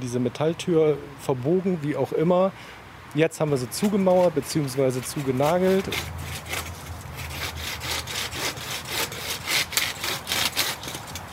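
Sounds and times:
speech: 0:00.0 - 0:06.6
handsaw cutting branches off a yew tree: 0:03.7 - 0:11.2.

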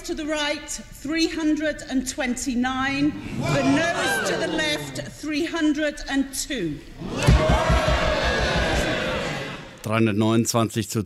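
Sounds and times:
speech: 0:00.0 - 0:07.8, 0:09.8 - 0:11.0
cheering in the House of Commons: 0:03.4 - 0:04.9, 0:07.0 - 0:09.8.

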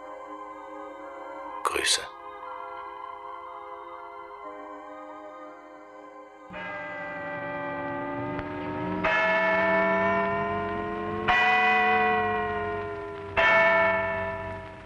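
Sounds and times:
speech: 0:01.7 - 0:02.2
deep clock bells striking: 0:06.5 - 0:14.8.

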